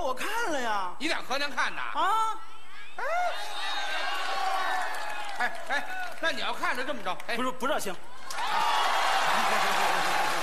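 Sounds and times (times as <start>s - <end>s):
speech: 0.1s - 4.1s, 5.4s - 8.6s, 9.4s - 10.1s
audience applause: 3.9s - 6.4s, 8.3s - 10.4s.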